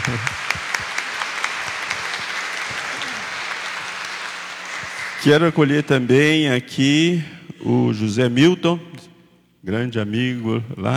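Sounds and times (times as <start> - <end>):
audience applause: 0.0 - 5.5
speech: 0.1 - 0.4, 5.2 - 8.9, 9.6 - 10.9.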